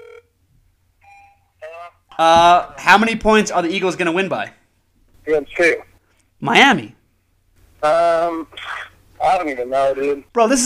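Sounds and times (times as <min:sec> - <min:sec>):
outgoing phone call ringing on the line: 0:00.0 - 0:00.3, 0:01.0 - 0:01.6
speech: 0:02.2 - 0:04.6, 0:05.3 - 0:07.0, 0:07.8 - 0:10.6.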